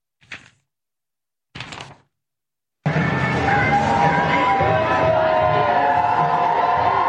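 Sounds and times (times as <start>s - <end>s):
crowd cheering as bus drives away: 2.9s - 7.0s.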